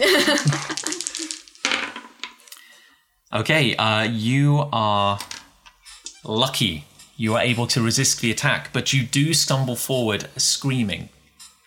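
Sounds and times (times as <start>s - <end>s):
laughter: 0.0s - 1.2s
dice rolling: 0.1s - 2.5s
speech: 3.3s - 5.3s, 6.2s - 11.6s.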